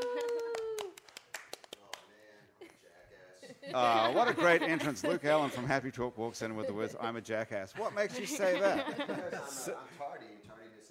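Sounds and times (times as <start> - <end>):
person cheering woo on a chat show: 0.0 - 1.0
people clapping to welcome a chat show guest: 0.0 - 2.2
laughter: 3.4 - 5.9, 6.5 - 9.8
speech: 3.7 - 10.4.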